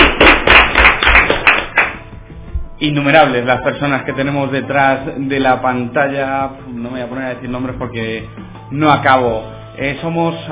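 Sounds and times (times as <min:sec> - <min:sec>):
audience clapping in unison at a student production: 0:00.0 - 0:02.8
speech: 0:02.8 - 0:10.5.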